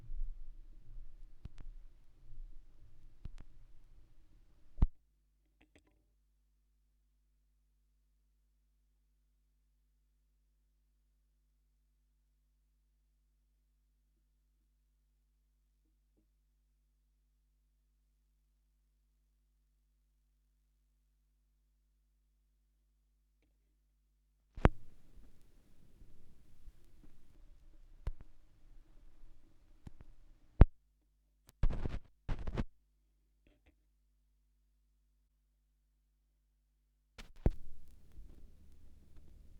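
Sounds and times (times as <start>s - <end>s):
vinyl record crackle: 0.0s - 5.0s, 24.6s - 30.8s, 31.5s - 32.7s, 37.2s - 39.5s.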